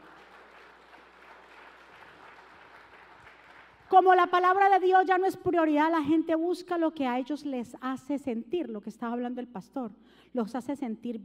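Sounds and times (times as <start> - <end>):
audience applause: 0.0 - 3.9
speech: 3.9 - 11.2.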